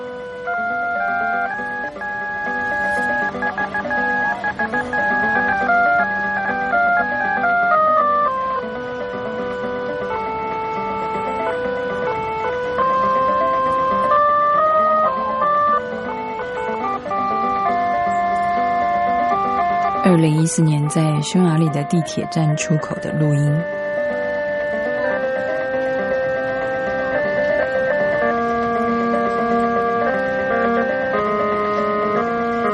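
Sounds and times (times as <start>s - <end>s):
electronic keyboard music: 0.0s - 32.7s
speech: 20.2s - 23.8s.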